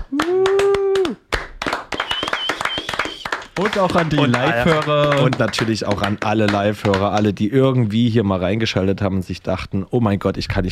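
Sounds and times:
applause, clapping hands: 0.0 - 7.4
speech: 3.6 - 10.7.

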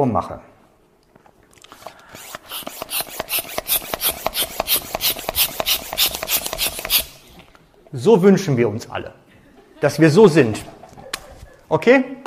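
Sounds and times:
speech: 0.0 - 0.5, 7.9 - 9.2, 9.8 - 10.8, 11.7 - 12.2
rubber balloon being handled and inflated: 1.7 - 7.5
laughter: 9.3 - 11.7.

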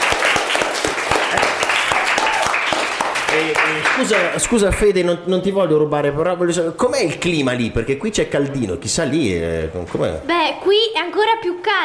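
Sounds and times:
applause: 0.0 - 4.6
speech: 3.4 - 11.8.

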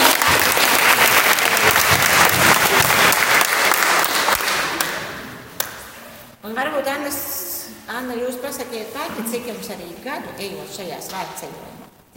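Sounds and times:
sustained audience applause: 0.0 - 5.3
speech: 6.8 - 12.0.

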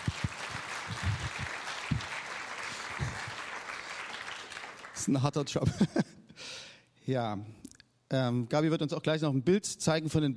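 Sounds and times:
audience applause: 0.0 - 5.4
speech: 5.0 - 10.3
laughter: 5.5 - 6.2.

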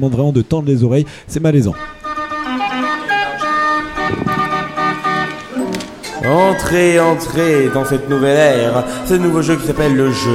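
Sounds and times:
speech: 0.0 - 2.0, 6.2 - 10.3
synthesized show jingle: 2.4 - 8.2.

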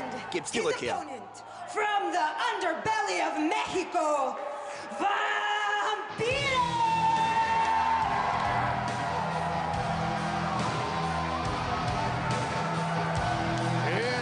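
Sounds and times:
wrestling crowd cheering: 0.0 - 2.6, 6.5 - 14.2
speech: 0.3 - 5.5
shouts and whoops: 4.8 - 14.2.

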